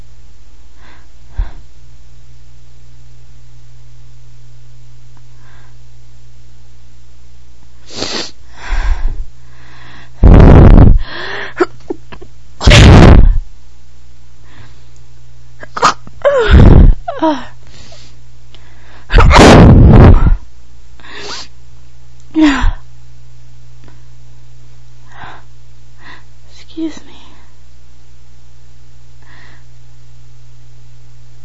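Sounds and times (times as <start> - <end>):
woman stifling: 10.2 - 13.4, 15.6 - 18.1, 19.1 - 20.4.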